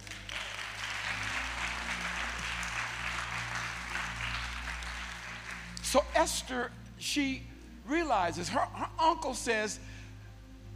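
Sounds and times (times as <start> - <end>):
audience clapping hands: 0.0 - 6.3
speech: 5.9 - 9.9.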